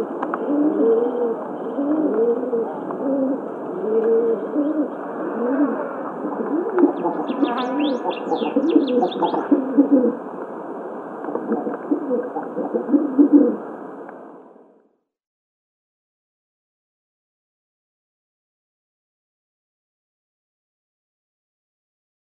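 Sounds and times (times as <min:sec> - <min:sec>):
rock pigeon: 0:00.0 - 0:10.2, 0:11.3 - 0:13.6.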